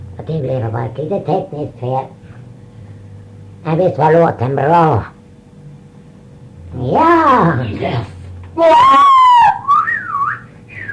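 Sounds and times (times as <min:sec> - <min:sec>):
speech: 0:00.2 - 0:02.2, 0:03.6 - 0:05.2, 0:06.7 - 0:09.1
audience whistling: 0:09.0 - 0:10.9.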